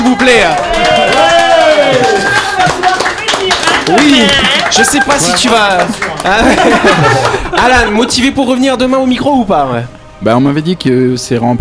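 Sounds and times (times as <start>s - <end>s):
applause for a guest: 0.0s - 8.0s
speech: 0.2s - 2.9s, 3.9s - 11.5s
laughter: 3.8s - 8.4s.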